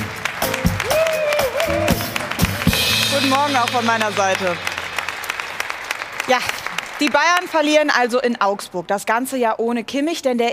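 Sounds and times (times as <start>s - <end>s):
crowd applause: 0.0s - 8.1s
speech: 3.2s - 4.7s, 6.3s - 10.5s.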